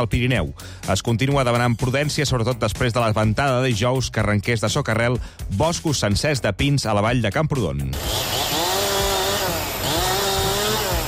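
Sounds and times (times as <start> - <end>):
speech: 0.0 - 8.6
chainsaw clearing fallen trees: 7.9 - 11.0.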